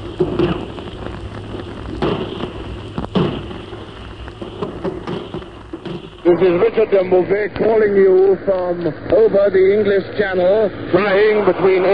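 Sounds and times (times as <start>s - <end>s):
shells whistling overhead: 0.0s - 7.2s
artillery barrage: 0.0s - 7.8s
speech: 6.3s - 11.9s.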